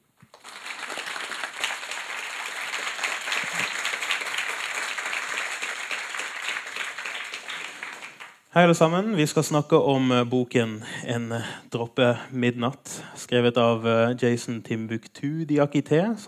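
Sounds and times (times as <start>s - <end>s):
audience applause welcoming a guest: 0.2s - 8.4s
speech: 8.6s - 16.2s.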